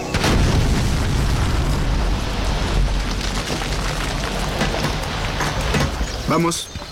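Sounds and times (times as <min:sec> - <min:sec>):
explosion blast set off after a fire in the hole warning: 0:00.2 - 0:05.4
explosion rumble: 0:00.2 - 0:06.2
speech: 0:06.3 - 0:06.8.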